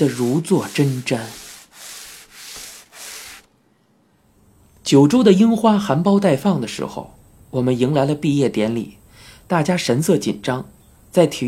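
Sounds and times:
speech: 0.0s - 1.4s, 4.9s - 11.4s
scrubbing a cart with a wet brush: 0.0s - 3.5s.

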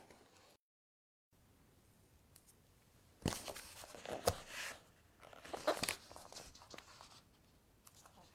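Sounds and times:
paper rustling and page-turning: 3.2s - 7.3s.

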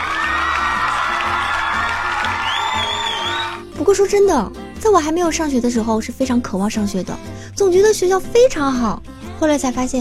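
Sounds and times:
clapping: 0.0s - 3.6s
crowd cheering with whoops and shouts: 0.0s - 3.6s
speech: 3.9s - 9.9s.

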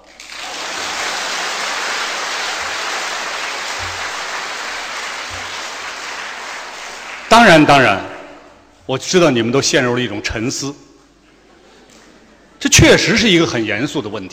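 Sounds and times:
audience applause: 0.0s - 7.4s
speech: 7.4s - 8.1s, 8.9s - 10.8s, 12.8s - 14.3s.

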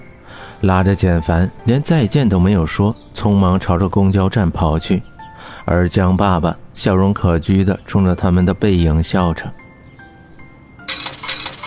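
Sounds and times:
speech: 0.6s - 9.6s
coins dropped into bus fare box: 10.9s - 11.6s.

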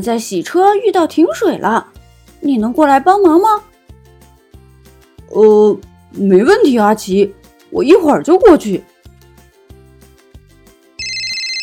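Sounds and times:
speech: 0.0s - 3.7s, 5.3s - 8.9s
telephone ringing: 11.0s - 11.6s.

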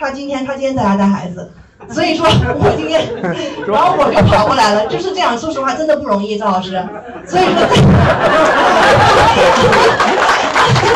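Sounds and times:
speech: 0.0s - 10.1s
laughter: 2.4s - 5.4s, 6.8s - 10.9s
audience applause: 8.2s - 10.9s.

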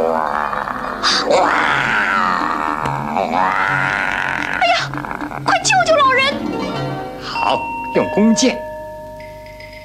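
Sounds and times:
tiger roaring: 0.0s - 6.0s
speech: 7.5s - 8.7s.

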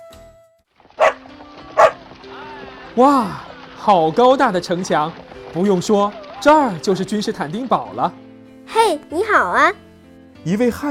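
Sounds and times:
dog barking: 1.0s - 2.0s
speech: 3.0s - 9.8s, 10.4s - 10.8s.

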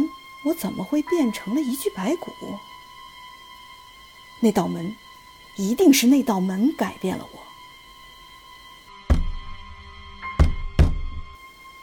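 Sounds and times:
speech: 0.4s - 2.7s, 4.4s - 7.4s
dull knocking from inside a red coffin: 9.1s - 9.5s, 10.4s - 11.2s.

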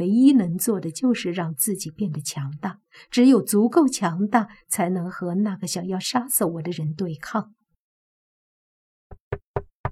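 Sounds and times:
speech: 0.0s - 7.6s
knocking on a door: 9.1s - 9.9s.

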